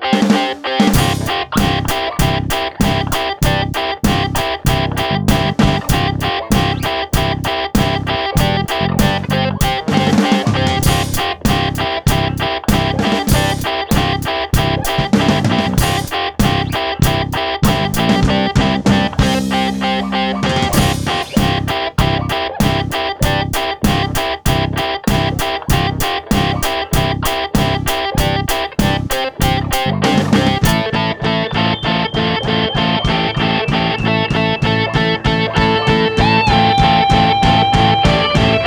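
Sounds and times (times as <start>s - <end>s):
1970s rock music intro: 0.1s - 38.6s.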